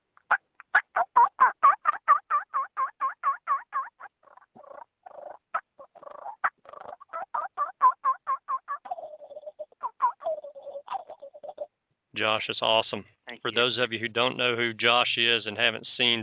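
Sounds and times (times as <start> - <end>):
turkey call yelps, purrs and gobbling rattle: 0.3 - 11.7
speech: 12.2 - 16.2.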